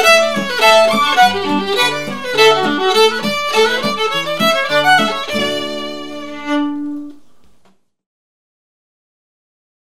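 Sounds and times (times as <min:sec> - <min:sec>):
hornpipe tune: 0:00.0 - 0:07.0.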